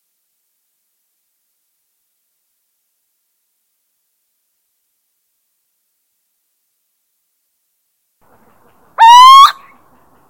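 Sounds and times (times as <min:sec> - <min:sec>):
little owl territorial hooting: 0:09.0 - 0:09.8.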